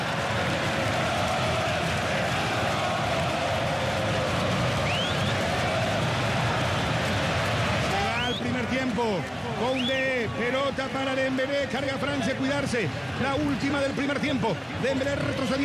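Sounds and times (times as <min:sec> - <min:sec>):
Paraguayan football crowd roaring at a match against France: 0:00.0 - 0:15.6
speech: 0:09.0 - 0:15.6.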